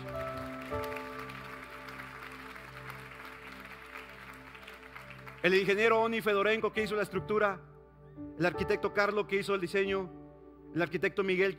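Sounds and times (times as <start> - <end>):
audience applause: 0.0 - 6.1
speech: 5.4 - 7.7, 8.3 - 11.5.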